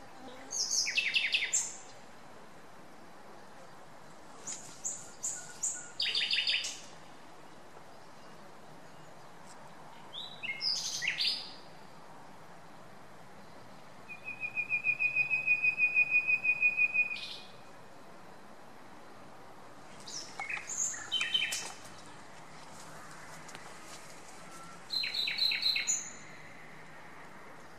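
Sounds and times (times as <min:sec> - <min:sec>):
common nightingale Luscinia megarhynchos singing whistled rattling and clicking phrases: 0:00.3 - 0:02.0, 0:04.4 - 0:09.2, 0:10.0 - 0:11.9, 0:13.4 - 0:17.8, 0:19.9 - 0:22.1, 0:24.3 - 0:26.4.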